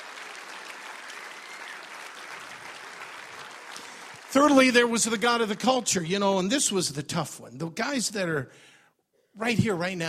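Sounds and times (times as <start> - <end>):
audience clapping: 0.0 - 6.4
speech: 4.4 - 8.8, 9.4 - 10.0.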